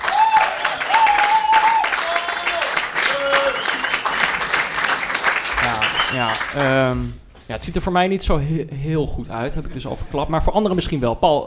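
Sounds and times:
people cheering: 0:00.0 - 0:06.7
audience applause: 0:00.0 - 0:06.8
speech: 0:06.2 - 0:11.4.

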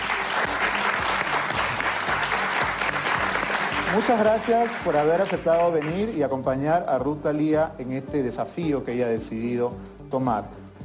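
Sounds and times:
audience applause: 0:00.0 - 0:06.0
speech: 0:03.9 - 0:10.7.

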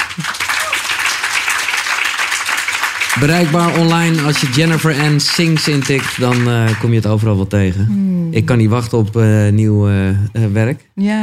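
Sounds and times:
group applauding: 0:00.0 - 0:07.2
speech: 0:03.2 - 0:11.2.

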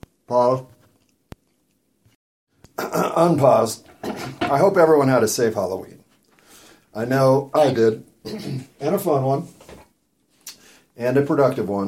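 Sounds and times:
speech: 0:00.3 - 0:00.7, 0:03.0 - 0:06.0, 0:06.9 - 0:09.6, 0:11.0 - 0:11.8
person chewing the last bite of a burrito: 0:00.9 - 0:01.9.

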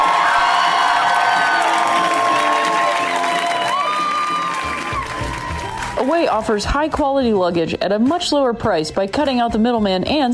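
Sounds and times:
audience applause welcoming a guest onto a stage: 0:00.0 - 0:06.2
speech: 0:06.2 - 0:10.3.

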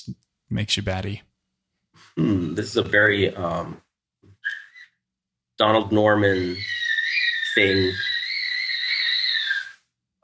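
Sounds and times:
speech: 0:00.0 - 0:01.3, 0:02.0 - 0:03.8, 0:05.6 - 0:06.8, 0:07.6 - 0:08.1
child screaming in another room: 0:06.4 - 0:09.8.

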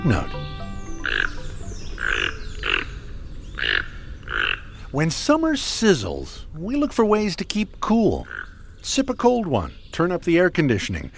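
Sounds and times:
speech: 0:00.0 - 0:00.4, 0:04.9 - 0:11.1
Toco Toucan croaking calls: 0:00.0 - 0:05.0, 0:08.1 - 0:11.1.

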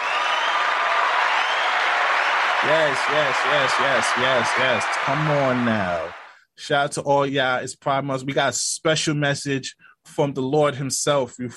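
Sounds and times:
applause: 0:00.0 - 0:06.4
speech: 0:02.6 - 0:11.5.

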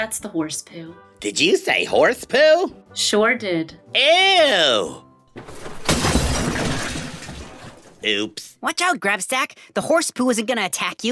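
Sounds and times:
speech: 0:00.0 - 0:05.7, 0:08.0 - 0:11.1
glass shattering: 0:05.4 - 0:08.1.

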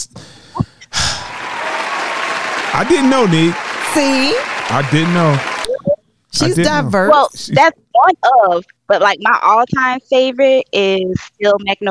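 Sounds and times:
laughter: 0:01.1 - 0:05.6, 0:06.4 - 0:07.7
clapping: 0:01.2 - 0:05.7
speech: 0:02.8 - 0:05.5, 0:06.3 - 0:11.9.

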